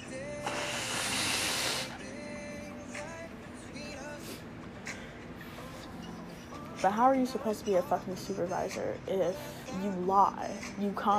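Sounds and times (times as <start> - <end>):
person blowing nose: 0.4 - 2.0
speech: 6.8 - 11.1.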